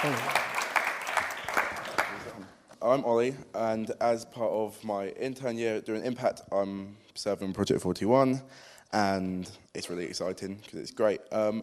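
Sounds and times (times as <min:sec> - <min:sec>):
speech: 0:00.0 - 0:00.4, 0:02.8 - 0:11.6
audience clapping: 0:00.0 - 0:02.5.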